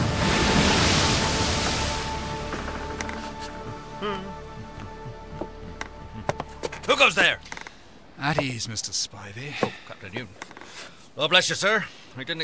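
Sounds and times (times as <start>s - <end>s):
ocean waves slapping against a ship's bow: 0.0s - 3.6s
speech: 7.0s - 7.5s, 8.2s - 12.4s
faint creaks: 7.4s - 8.0s, 10.2s - 11.1s.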